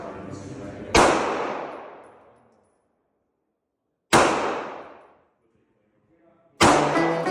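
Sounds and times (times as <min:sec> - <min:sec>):
gunshots at an outdoor shooting range: 0:00.9 - 0:02.2, 0:04.1 - 0:05.2, 0:06.6 - 0:07.2.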